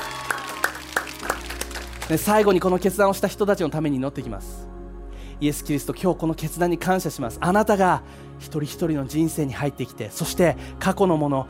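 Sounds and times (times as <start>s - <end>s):
audience applauding: 0.0s - 2.9s
speech: 2.1s - 4.7s, 5.4s - 11.4s.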